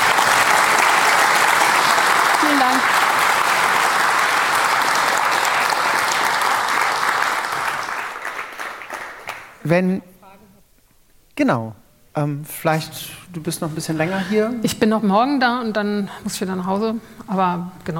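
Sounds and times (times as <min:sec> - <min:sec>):
audience applause: 0:00.0 - 0:09.6
speech: 0:02.5 - 0:02.9, 0:09.7 - 0:10.1, 0:11.4 - 0:17.9.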